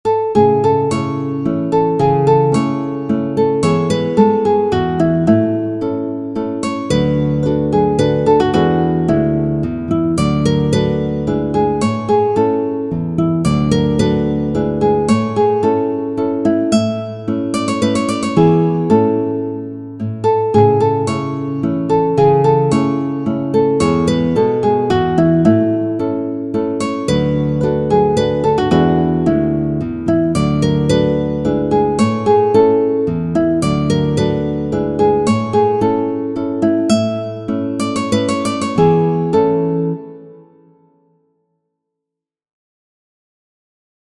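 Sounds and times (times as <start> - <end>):
guitar: 0.0 - 41.2.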